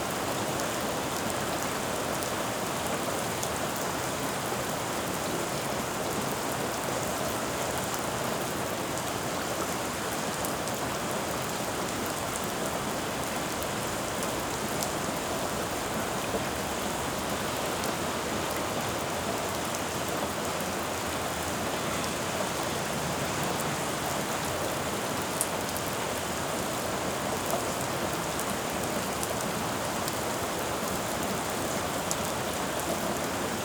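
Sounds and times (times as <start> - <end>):
splatty rain on a city street: 0.0 - 33.6.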